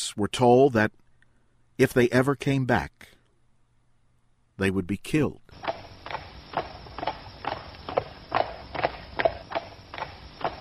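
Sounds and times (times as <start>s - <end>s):
speech: 0.1s - 1.0s, 1.8s - 3.2s, 4.6s - 5.8s
horses walking slowly, hooves clip-clopping: 5.5s - 10.5s.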